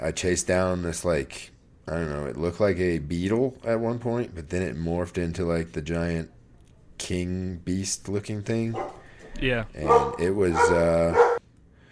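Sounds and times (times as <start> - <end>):
speech: 0.0 - 6.4, 7.0 - 11.3
dog yelping bark: 8.7 - 9.2, 9.8 - 11.4.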